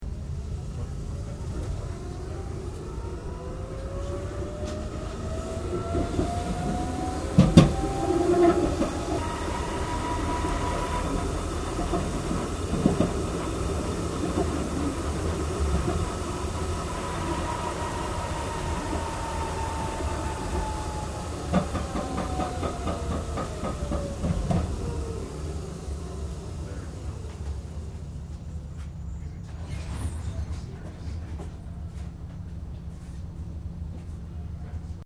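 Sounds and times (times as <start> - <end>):
Melbourne Z3 Class tram interior starting and stopping on track: 0.0 - 35.0.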